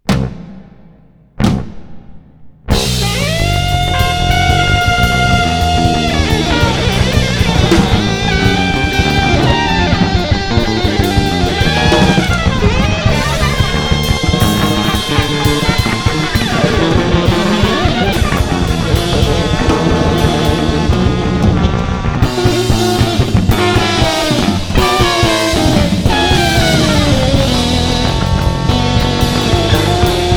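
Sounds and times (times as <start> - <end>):
crazy free jazz music: 2.7 - 30.3.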